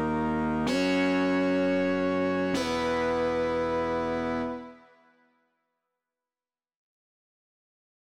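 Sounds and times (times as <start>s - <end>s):
lead melody at 128 BPM in G sharp: 0.0s - 5.1s.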